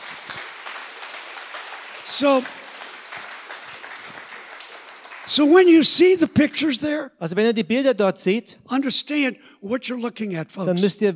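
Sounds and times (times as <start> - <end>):
audience applause: 0.0 - 6.1
speech: 2.1 - 2.6, 5.3 - 11.1.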